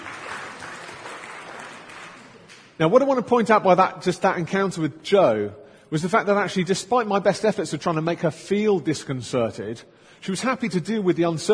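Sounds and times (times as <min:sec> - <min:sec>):
crowd applauding: 0:00.0 - 0:02.8
speech: 0:02.8 - 0:11.5.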